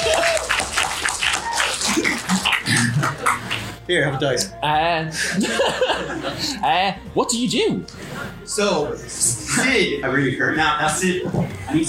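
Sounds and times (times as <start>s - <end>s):
applause: 0.0s - 2.6s
laughter: 0.0s - 3.8s, 5.1s - 6.7s
speech: 3.9s - 11.8s.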